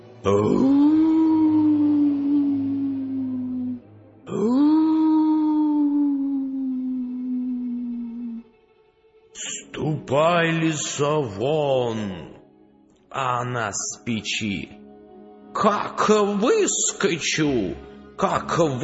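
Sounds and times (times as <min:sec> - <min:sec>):
speech: 0:00.2 - 0:01.0, 0:10.7 - 0:12.4, 0:13.2 - 0:14.8, 0:15.6 - 0:18.8
wolf howling: 0:00.2 - 0:08.5.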